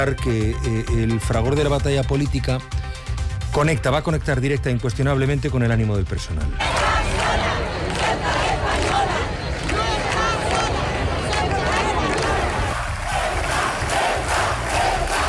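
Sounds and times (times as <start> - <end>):
speech: 0.0 - 7.5
crowd shouting protest chants: 6.6 - 15.2.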